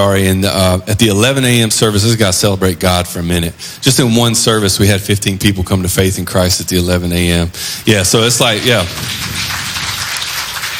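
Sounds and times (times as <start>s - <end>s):
speech: 0.0s - 9.6s
audience applause: 8.4s - 10.7s.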